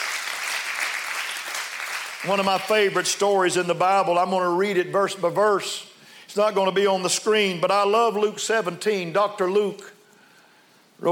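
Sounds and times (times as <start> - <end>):
audience clapping hands: 0.0 - 2.9
speech: 2.2 - 10.0, 11.0 - 11.1.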